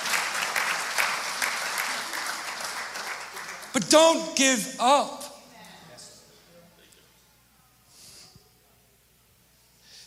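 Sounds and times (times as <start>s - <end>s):
audience clapping: 0.0s - 4.4s
speech: 3.8s - 5.2s.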